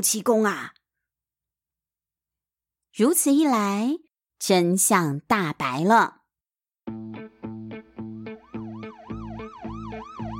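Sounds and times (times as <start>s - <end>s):
speech: 0.0s - 0.8s, 3.0s - 6.2s
police car siren: 8.0s - 10.3s.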